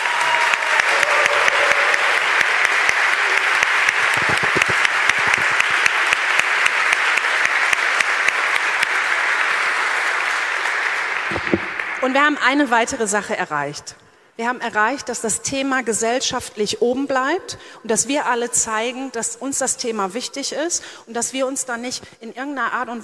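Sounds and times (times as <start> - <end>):
audience applause: 0.0 - 12.0
speech: 12.1 - 23.0.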